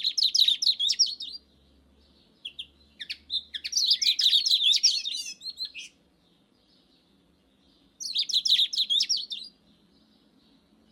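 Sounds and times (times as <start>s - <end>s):
Eurasian bullfinch twittering: 0.0s - 1.5s, 2.2s - 6.0s, 7.7s - 9.6s.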